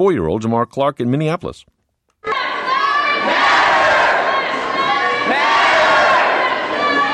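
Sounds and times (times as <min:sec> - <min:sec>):
speech: 0:00.0 - 0:01.7
protesters chanting in a shopping mall: 0:02.2 - 0:07.1.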